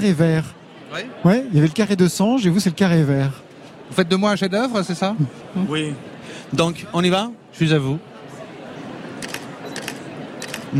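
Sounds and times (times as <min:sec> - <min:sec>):
speech: 0:00.0 - 0:08.1
steady murmur: 0:00.0 - 0:10.7
camera shutter firing during a portrait photo session: 0:09.2 - 0:10.7.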